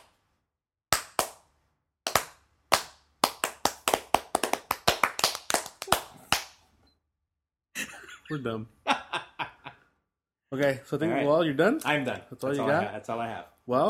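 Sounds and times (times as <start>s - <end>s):
slow clapping: 0.9s - 1.4s, 2.1s - 6.6s
laughter: 7.8s - 9.9s
speech: 8.3s - 8.8s, 10.5s - 13.8s.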